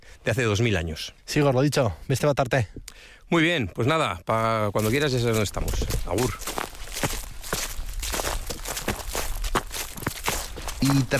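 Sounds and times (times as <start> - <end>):
speech: 0.2 - 7.2, 10.8 - 11.1
footsteps on fallen autumn leaves in oak woods: 4.8 - 11.1.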